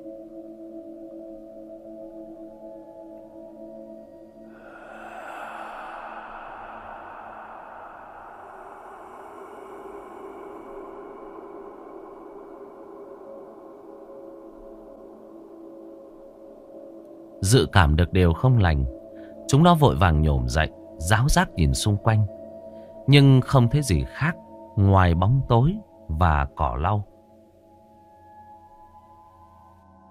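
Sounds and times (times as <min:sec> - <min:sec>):
eerie steady drone of low tones: 0:04.4 - 0:14.8
howling whistling wind at night: 0:04.5 - 0:15.5
speech: 0:17.5 - 0:22.4, 0:23.1 - 0:27.1.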